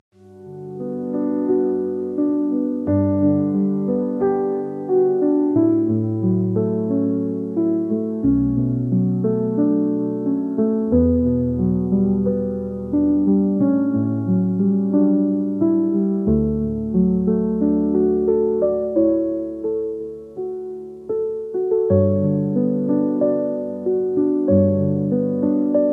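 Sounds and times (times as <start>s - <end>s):
instrumental piano music: 0.1s - 25.9s.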